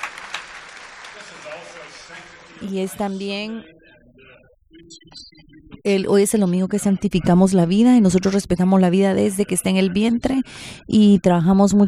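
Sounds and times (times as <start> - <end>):
applause at a Sunday church gathering: 0.0 - 2.4
speech: 2.0 - 11.8.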